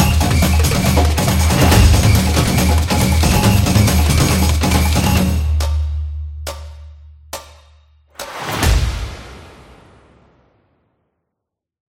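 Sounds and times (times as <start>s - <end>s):
Brazil drums: 0.0s - 6.8s, 8.1s - 10.4s.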